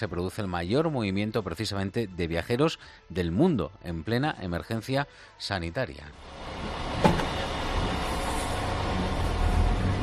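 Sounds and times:
speech: 0.0 - 7.2
idling traffic on a highway: 6.2 - 10.0
brief sharp knock: 7.0 - 7.3.

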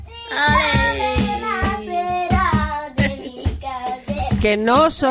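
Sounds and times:
child clapping flamenco palmas: 0.5 - 2.8
speech: 4.5 - 5.0.

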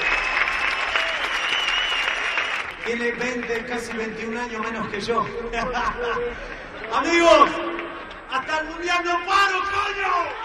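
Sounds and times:
audience applause: 0.0 - 8.6
speech: 2.9 - 10.4.

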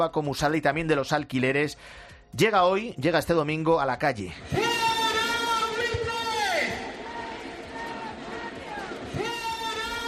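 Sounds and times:
speech: 0.0 - 4.8
protest crowd chanting in Madrid and Barcelona: 4.5 - 10.0.

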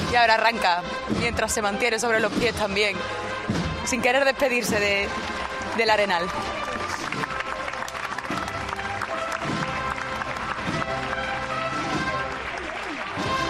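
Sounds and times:
speech: 0.1 - 6.7
crowd ovation in the street: 5.4 - 13.4.

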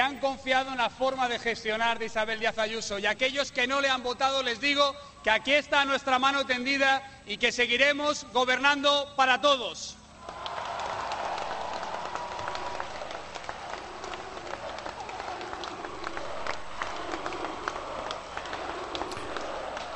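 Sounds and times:
speech: 0.2 - 10.0
large crowd shouting and cheering: 10.2 - 19.9
scattered clapping: 10.2 - 19.9.

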